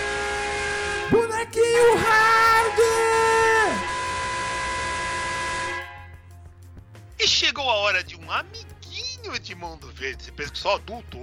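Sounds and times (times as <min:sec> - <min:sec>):
show jingle brassy horn tone: 0:00.0 - 0:06.2
show jingle buzzing chord: 0:00.0 - 0:06.4
speech: 0:09.5 - 0:11.2.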